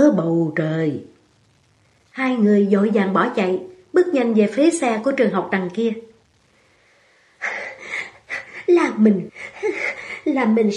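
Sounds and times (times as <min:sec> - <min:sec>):
speech: 0:00.5 - 0:01.1, 0:02.2 - 0:06.1, 0:08.7 - 0:10.7
person panting heavily: 0:07.4 - 0:08.6, 0:09.3 - 0:10.3.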